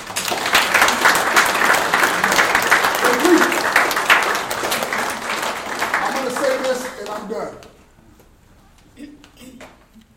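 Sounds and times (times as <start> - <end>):
audience applause: 0.0 - 7.6.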